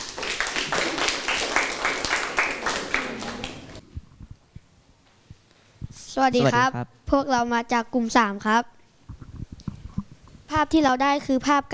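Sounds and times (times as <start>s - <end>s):
classroom applause: 0.0s - 3.8s
speech: 6.2s - 8.8s, 10.6s - 11.7s.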